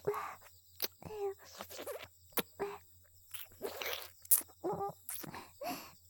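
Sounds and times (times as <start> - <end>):
erotic ear licking: 0.0 - 2.6, 3.3 - 5.3.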